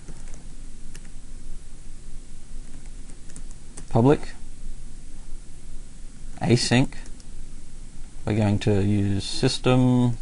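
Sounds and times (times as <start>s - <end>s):
code typed on a computer keyboard: 0.0s - 1.1s, 2.6s - 3.9s
faint hiss: 0.0s - 10.2s
speech: 3.9s - 4.4s, 6.4s - 7.1s, 8.2s - 10.2s.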